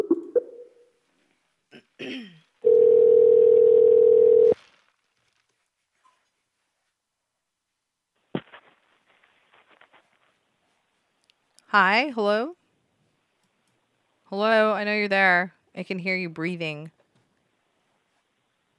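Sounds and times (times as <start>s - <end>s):
speech: 2.0s - 2.4s, 11.7s - 12.6s, 14.3s - 17.0s
telephone dial tone: 2.6s - 4.6s.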